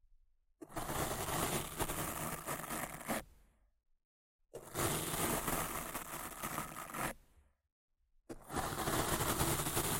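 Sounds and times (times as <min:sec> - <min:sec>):
rough scratching and brushing against a microphone: 0:00.7 - 0:03.3, 0:04.6 - 0:07.2, 0:08.4 - 0:09.9.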